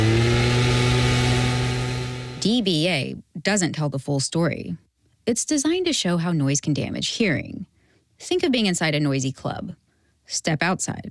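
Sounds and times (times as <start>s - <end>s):
gas-powered leaf blower droning: 0.0s - 2.6s
speech: 2.6s - 11.0s.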